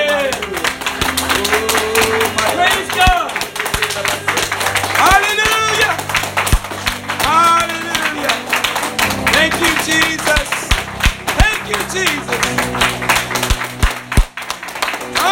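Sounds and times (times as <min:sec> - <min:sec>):
audience clapping: 0:00.0 - 0:15.2.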